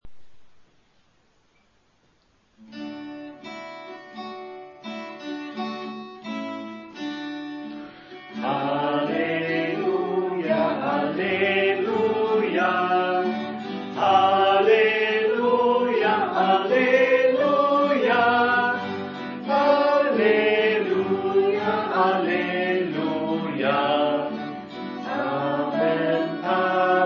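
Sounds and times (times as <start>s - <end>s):
choral singing: 8.3s - 27.0s.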